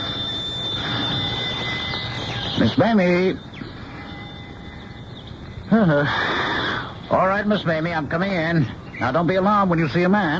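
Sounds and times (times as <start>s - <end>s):
old-fashioned doorbell ringing: 0.0s - 7.6s
speech: 2.6s - 3.5s, 5.7s - 6.4s, 7.1s - 10.3s.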